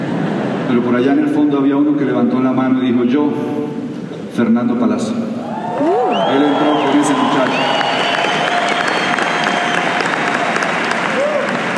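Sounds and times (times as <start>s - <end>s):
speech: 0.7s - 7.8s
audience applause: 5.5s - 11.7s.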